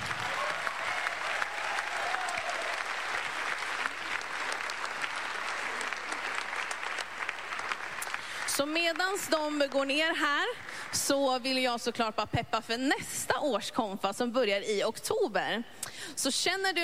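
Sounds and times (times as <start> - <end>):
audience applause: 0.0 - 9.8
speech: 8.6 - 16.8.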